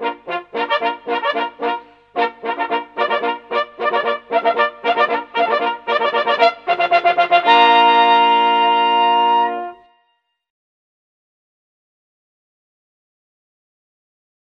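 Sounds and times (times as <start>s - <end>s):
polyphonic horn rising in pitch: 0.0s - 9.9s.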